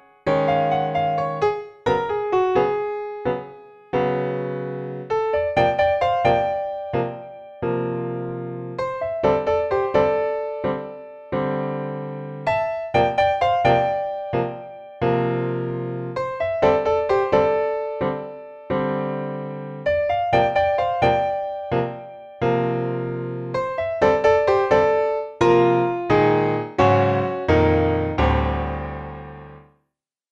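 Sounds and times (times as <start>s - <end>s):
modern solo jazz piano: 0.0s - 29.7s.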